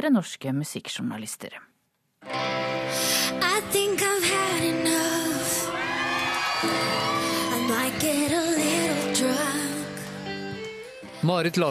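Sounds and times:
speech: 0.0s - 1.7s, 2.9s - 5.0s, 11.2s - 11.6s
music: 2.2s - 11.6s
concert crowd cheering with shouts and whoops: 5.3s - 9.0s.

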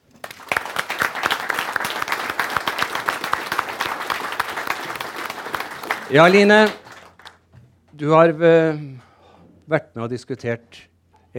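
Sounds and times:
audience applause: 0.0s - 7.4s
speech: 6.1s - 6.8s, 8.0s - 9.1s, 9.7s - 11.3s.

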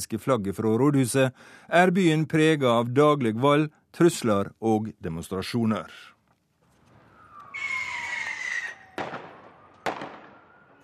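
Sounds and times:
speech: 0.0s - 6.1s
firework bangs during street riot: 6.8s - 10.6s
whistling hissing firework rocket during street riot: 6.8s - 10.8s.

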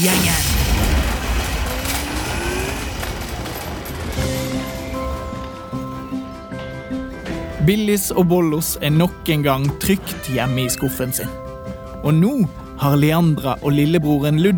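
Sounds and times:
speech: 0.0s - 0.6s, 7.7s - 11.4s, 12.0s - 14.5s
car speeding off: 1.0s - 5.1s.

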